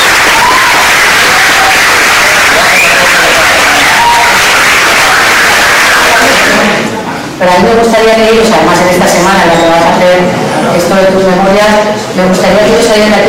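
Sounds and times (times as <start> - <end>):
audience applause: 0.0 - 6.9
speech: 7.4 - 13.2.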